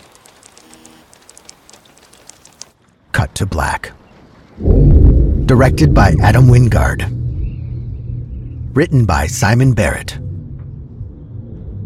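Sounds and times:
rainwater dripping and splashing on a camera: 0:00.0 - 0:02.8
speech: 0:03.2 - 0:04.0, 0:04.6 - 0:07.2, 0:08.8 - 0:10.2.

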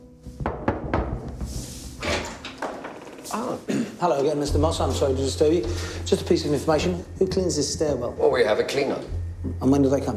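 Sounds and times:
knocking on Mr. Moss's door: 0:00.4 - 0:01.6
speech: 0:03.3 - 0:10.1.

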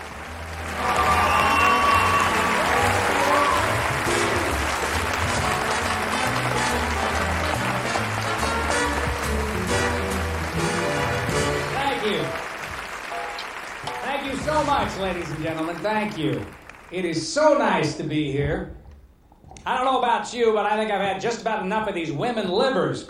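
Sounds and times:
large audience applause for a stage entrance: 0:00.0 - 0:17.2
faint audience cheers: 0:00.5 - 0:05.0
speech: 0:15.0 - 0:18.8, 0:19.6 - 0:23.0.

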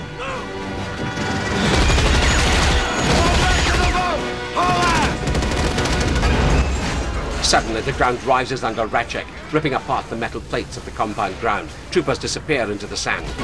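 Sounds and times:
rapid gunfire covering troopers boarding a ship in a sci-fi audio drama: 0:00.6 - 0:08.2, 0:10.4 - 0:13.4
speech: 0:07.5 - 0:13.4.

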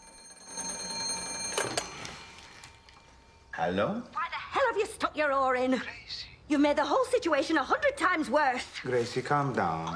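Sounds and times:
telephone ringing: 0:00.0 - 0:03.6
speech: 0:03.6 - 0:09.9.

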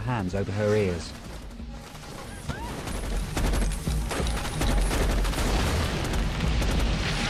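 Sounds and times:
speech: 0:00.1 - 0:01.3
gunfire during a SEAL force's jungle ambush: 0:01.8 - 0:07.2
fiery explosions during a jungle ambush: 0:02.4 - 0:07.2.

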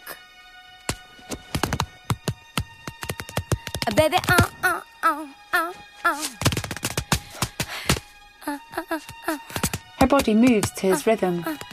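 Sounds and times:
tap-dance footsteps: 0:00.9 - 0:04.6, 0:06.3 - 0:08.1, 0:09.0 - 0:11.7
speech: 0:03.9 - 0:06.4, 0:09.0 - 0:11.6.

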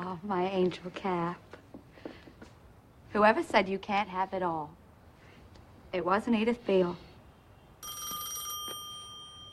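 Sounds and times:
speech: 0:00.2 - 0:01.6, 0:03.1 - 0:04.8, 0:05.9 - 0:07.1
telephone bell ringing at Grey Gardens: 0:07.8 - 0:09.5.

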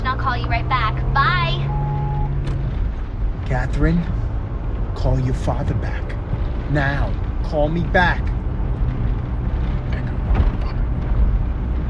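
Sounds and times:
police car passing in the opposite direction across a median: 0:00.0 - 0:11.8
speech: 0:00.3 - 0:01.4, 0:03.5 - 0:04.2, 0:05.0 - 0:08.4.

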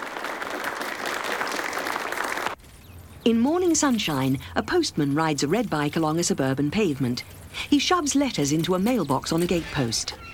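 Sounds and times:
applause from a gathered group: 0:00.0 - 0:02.6
speech: 0:03.2 - 0:10.3.

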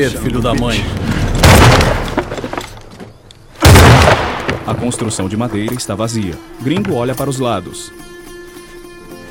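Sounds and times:
speech: 0:00.0 - 0:02.0, 0:04.7 - 0:08.1
shotgun blast in an audio drama: 0:01.4 - 0:02.2, 0:03.6 - 0:04.6.

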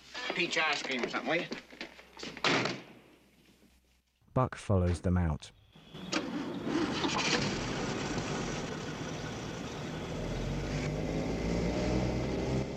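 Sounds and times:
speech: 0:00.4 - 0:01.6, 0:02.2 - 0:02.5, 0:04.4 - 0:05.6
car engine rumble pulling out of a dirt motel parking lot: 0:05.8 - 0:12.7.

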